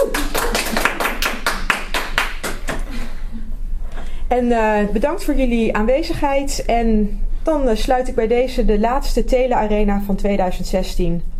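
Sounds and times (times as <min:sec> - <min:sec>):
audience clapping loudly: 0:00.0 - 0:02.9
speech: 0:04.3 - 0:11.3.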